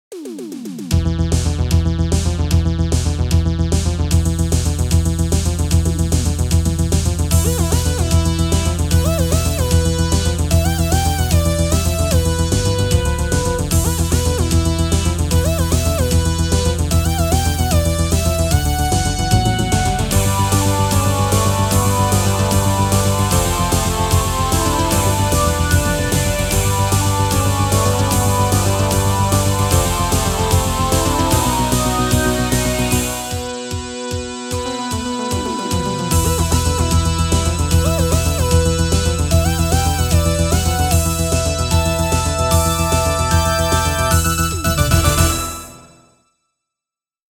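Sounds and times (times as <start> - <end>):
1980s TV theme music: 0.2 - 46.2.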